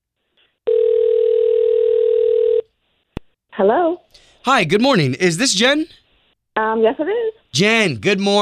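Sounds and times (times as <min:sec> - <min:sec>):
steady telephone ringback tone: 0:00.7 - 0:02.6
speech: 0:03.6 - 0:06.0, 0:06.7 - 0:08.4.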